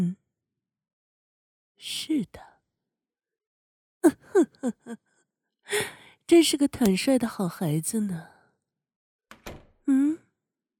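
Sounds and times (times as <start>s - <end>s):
speech: 1.8s - 2.5s, 4.0s - 5.0s, 5.7s - 8.3s, 9.9s - 10.2s
entrance door swinging shut on its own: 9.3s - 9.9s.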